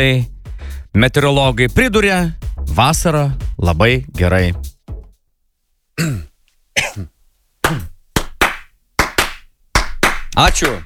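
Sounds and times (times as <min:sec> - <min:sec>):
speech: 0:00.0 - 0:00.3, 0:01.0 - 0:04.7, 0:06.0 - 0:07.1, 0:07.7 - 0:07.9, 0:10.4 - 0:10.8
sparse applause following a young boy's poem at an autumn celebration: 0:07.6 - 0:10.8.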